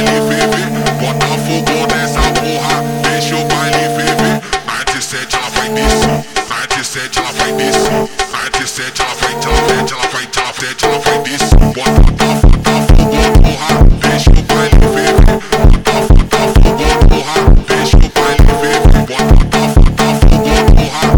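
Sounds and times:
slowed alien horror funk music: 0.0 - 4.6, 5.4 - 6.5, 9.2 - 10.0, 10.8 - 21.1.

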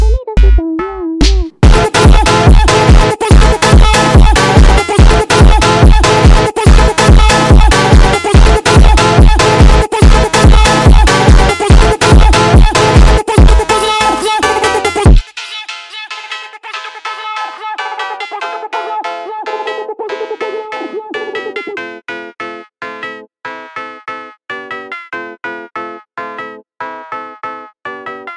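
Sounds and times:
sped up funk music: 1.2 - 15.1.

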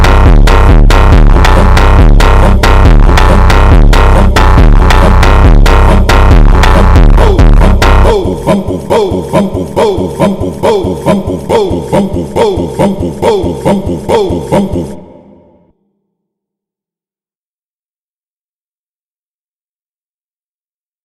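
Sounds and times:
phonk music: 0.0 - 15.7.

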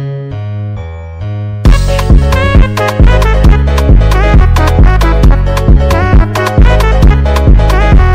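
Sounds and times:
bass-boosted type beat: 1.6 - 8.1.

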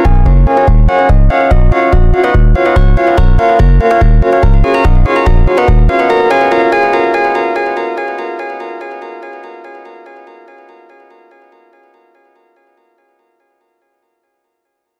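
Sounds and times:
sped up funk music: 0.0 - 7.7.

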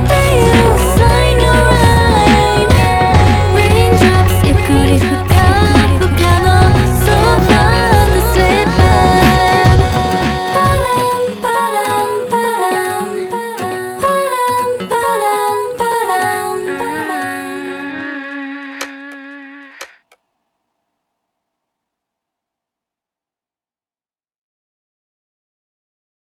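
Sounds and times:
slowed reverb music: 0.0 - 19.4.

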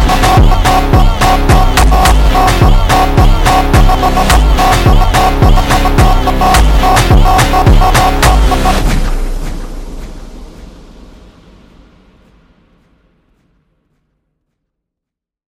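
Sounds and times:
slowed funk music: 0.0 - 11.2.

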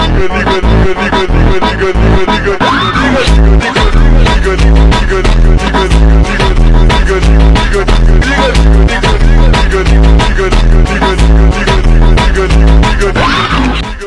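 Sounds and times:
slowed montagem funk music with reverb and micro echo: 0.0 - 14.0.

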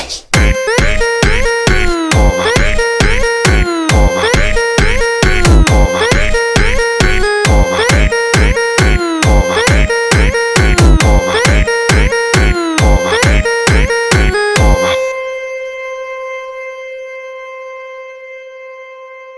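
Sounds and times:
Brazilian funk music: 0.4 - 15.2.

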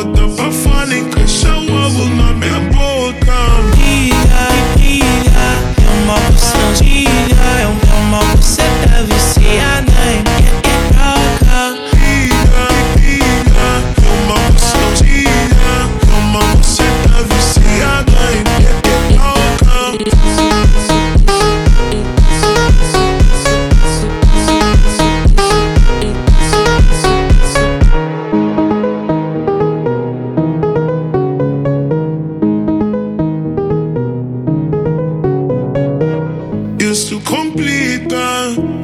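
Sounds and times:
slowed montagem music: 0.2 - 38.6.

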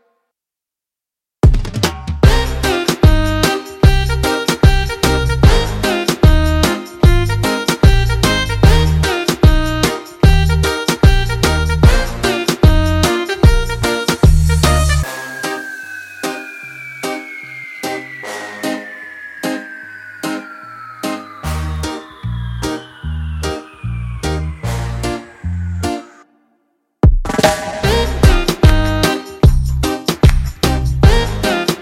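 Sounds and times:
instrumental remix beat: 1.4 - 18.0, 27.0 - 31.8.

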